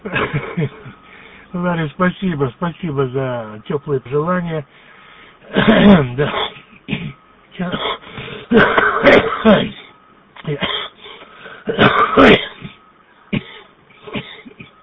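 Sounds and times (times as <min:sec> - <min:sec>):
man clearing throat: 0:00.0 - 0:01.0, 0:05.5 - 0:11.0, 0:11.7 - 0:14.8
man coughing: 0:00.0 - 0:01.0, 0:05.5 - 0:14.8
speech: 0:00.1 - 0:00.9, 0:01.5 - 0:04.9, 0:05.5 - 0:06.6, 0:07.6 - 0:07.9, 0:08.5 - 0:09.8, 0:10.5 - 0:10.8, 0:11.7 - 0:12.4.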